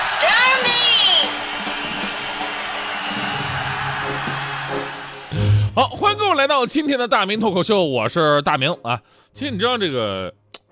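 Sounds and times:
audience applause: 0.0 - 5.3
crowd cheering and whooping: 0.0 - 5.3
high rising and falling shouts: 0.0 - 5.3
speech: 5.8 - 10.4.

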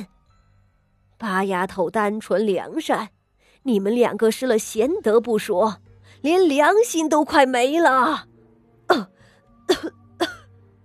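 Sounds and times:
speech: 1.2 - 8.3, 8.9 - 9.1, 9.7 - 10.3
old woman coughing: 8.9 - 9.1, 9.7 - 10.5.

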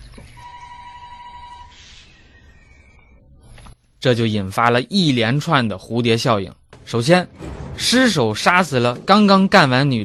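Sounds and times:
telephone ringing: 0.4 - 1.8
speech: 4.0 - 10.0
low rumble: 6.7 - 9.2.

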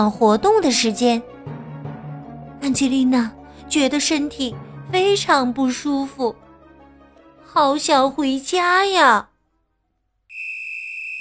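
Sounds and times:
speech: 0.0 - 1.3, 2.6 - 6.4, 7.5 - 9.3
whistle blown by a gym teacher: 10.3 - 11.2.

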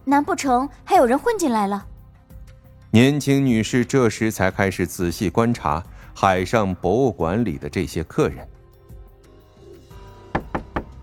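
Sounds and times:
speech: 0.1 - 1.9, 2.9 - 8.6
urgent knocking on a door: 10.3 - 11.0.

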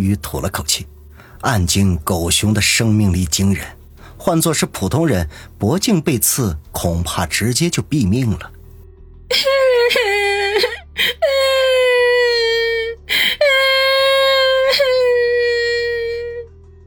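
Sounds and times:
speech: 0.0 - 8.6, 9.3 - 11.1
person sobbing in a high strained voice: 9.3 - 16.4.

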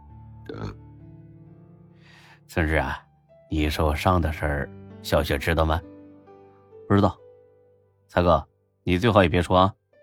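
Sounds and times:
satisfied burp after a big meal: 0.4 - 0.8
speech: 0.5 - 0.8, 2.5 - 5.9, 6.9 - 7.2, 8.1 - 9.8.

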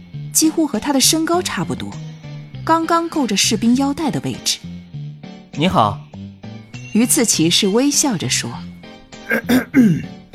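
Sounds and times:
speech: 0.4 - 2.1, 2.7 - 4.7, 5.6 - 6.0, 6.9 - 8.7, 9.3 - 10.2
throat clearing: 9.3 - 10.2.

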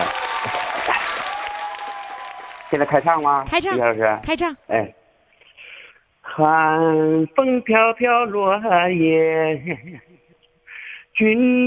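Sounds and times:
applause: 0.0 - 4.2
speech: 2.7 - 5.0, 6.4 - 10.2, 11.2 - 11.6.

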